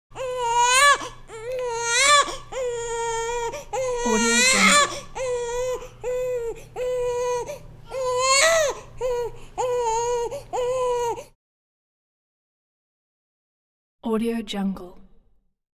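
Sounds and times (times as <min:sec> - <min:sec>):
baby crying in a hospital nursery: 0:00.2 - 0:11.3.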